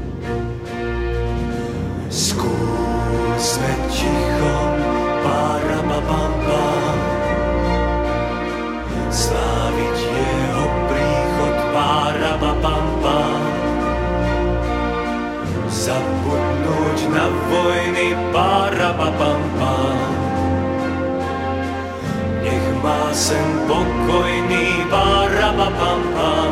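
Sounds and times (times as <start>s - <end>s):
drums: 0.0s - 26.5s.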